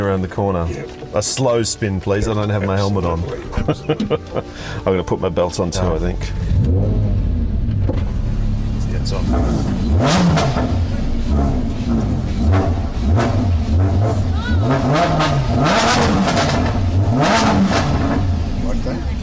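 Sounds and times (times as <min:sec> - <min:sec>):
speech: 0:00.0 - 0:07.0, 0:09.0 - 0:12.7, 0:14.1 - 0:16.3
laughter: 0:03.0 - 0:04.8
Lamborghini engine revving: 0:05.9 - 0:19.2.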